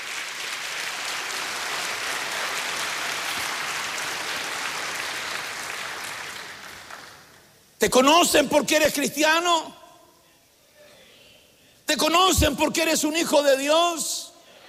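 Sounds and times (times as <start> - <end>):
audience clapping hands: 0.0 - 7.6
speech: 7.8 - 9.8, 11.9 - 14.2.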